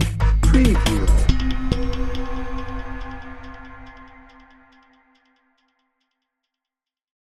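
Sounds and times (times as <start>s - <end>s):
pulsing tension drone: 0.2s - 4.4s.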